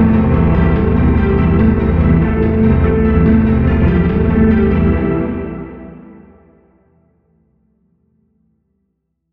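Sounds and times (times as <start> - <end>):
resounding tone: 0.0 - 6.4.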